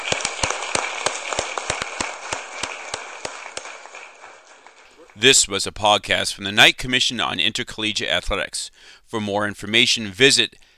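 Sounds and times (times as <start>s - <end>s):
round of applause: 0.0s - 5.3s
speech: 5.2s - 10.7s.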